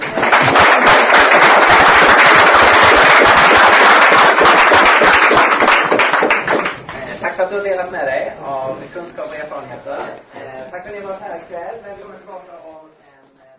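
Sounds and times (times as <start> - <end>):
warm audience applause: 0.0 - 6.9
speech: 7.6 - 12.5.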